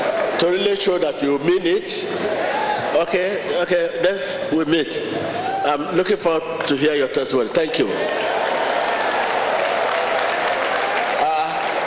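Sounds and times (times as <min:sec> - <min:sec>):
speech: 0:00.4 - 0:08.2
audience clapping: 0:08.0 - 0:11.8.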